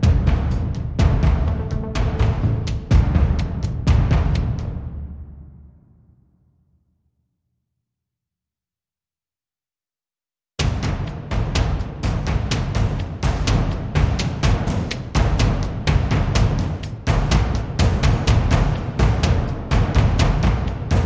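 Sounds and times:
drums: 0.0 - 6.1, 10.6 - 21.0.

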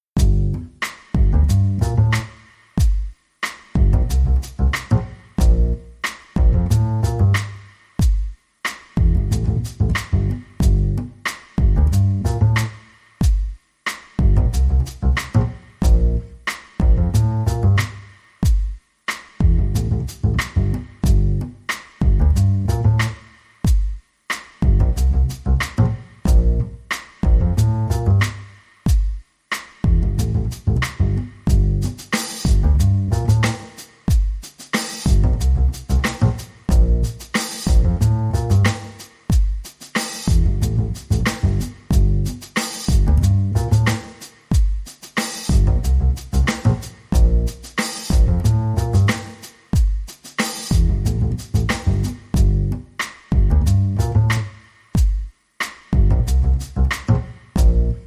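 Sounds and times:
drum and bass music: 0.0 - 58.0.

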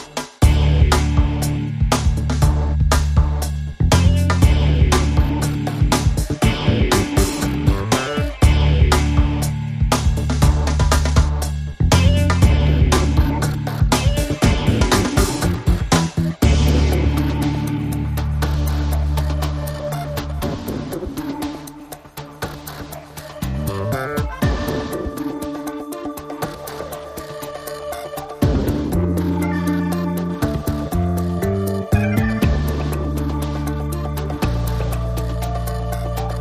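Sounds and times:
funky groove without melody: 0.1 - 36.3.

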